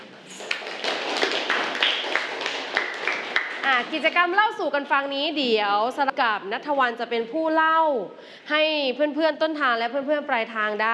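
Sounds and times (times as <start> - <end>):
students clapping hands: 0.3 - 3.9
speech: 3.7 - 10.9.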